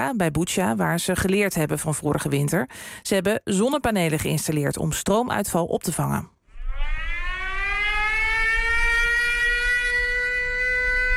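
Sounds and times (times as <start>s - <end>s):
speech: 0.0s - 7.0s
air raid siren: 6.5s - 11.1s.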